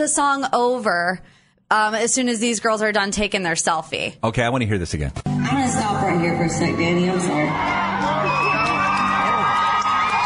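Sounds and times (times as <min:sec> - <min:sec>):
speech: 0:00.0 - 0:08.2
concert crowd cheering: 0:06.6 - 0:10.2.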